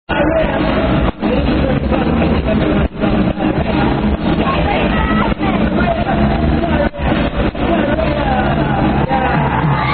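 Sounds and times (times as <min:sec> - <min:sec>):
live song: 0:00.1 - 0:09.9.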